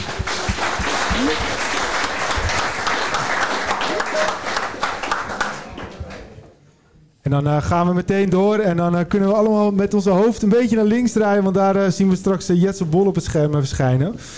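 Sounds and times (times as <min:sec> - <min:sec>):
audience applause: 0:00.0 - 0:06.4
speech: 0:07.3 - 0:14.3.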